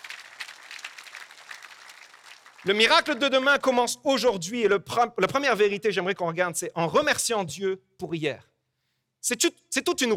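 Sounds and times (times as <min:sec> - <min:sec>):
church congregation applauding: 0:00.0 - 0:03.3
speech: 0:02.6 - 0:08.5, 0:09.2 - 0:10.1.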